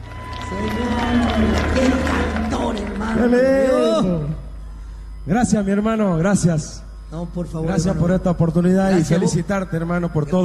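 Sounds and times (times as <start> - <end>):
audience clapping and cheering: 0.0 - 4.0
speech: 0.5 - 4.4, 5.3 - 10.4.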